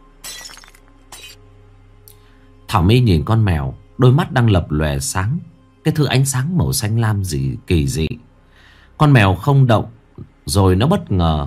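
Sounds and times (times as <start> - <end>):
glass cup slipping from a hand and shattering: 0.2 - 1.4
speech: 2.7 - 8.3, 9.0 - 11.4.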